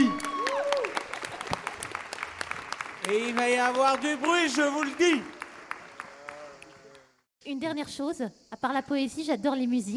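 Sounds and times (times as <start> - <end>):
audience applauding: 0.0 - 7.2
speech: 3.1 - 5.4, 7.4 - 9.9.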